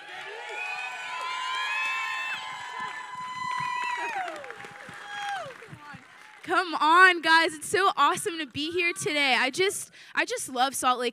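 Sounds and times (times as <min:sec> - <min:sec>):
audience shouts and high whoops: 0:00.0 - 0:06.3
audience applauding to welcome a speaker onto the stage: 0:00.0 - 0:07.5
speech: 0:06.5 - 0:11.1.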